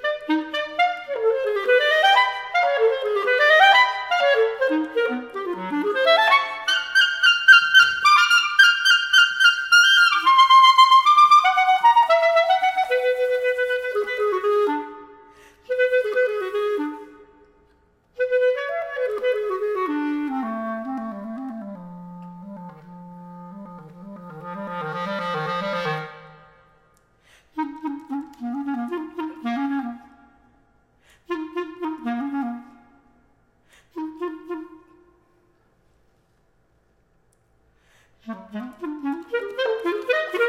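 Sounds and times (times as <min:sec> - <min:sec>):
solo B-flat clarinet: 0:00.0 - 0:35.6, 0:38.2 - 0:40.4.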